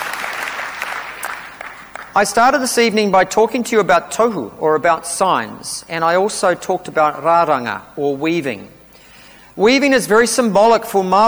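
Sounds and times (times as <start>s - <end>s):
audience applause: 0.0s - 2.2s
speech: 2.1s - 8.8s, 9.6s - 11.2s.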